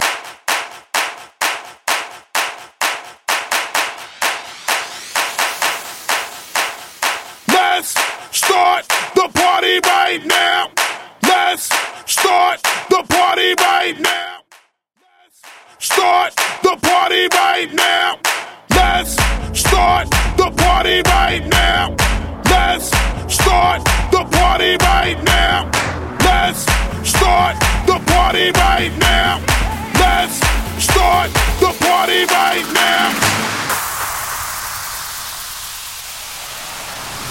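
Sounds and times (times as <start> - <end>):
90s pop rock claps a cappella bootleg at 128 bpm: 0.0 - 14.6, 15.4 - 34.0.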